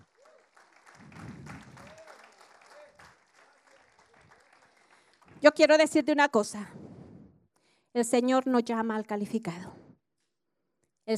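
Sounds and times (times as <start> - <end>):
audience applause: 0.0 - 5.5
speech: 5.4 - 6.8, 8.0 - 9.8.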